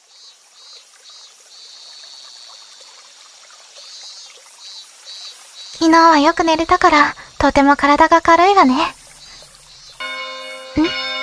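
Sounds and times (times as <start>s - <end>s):
speech: 5.8s - 9.0s, 10.8s - 11.0s
signal or alarm bell ringing: 10.0s - 11.2s.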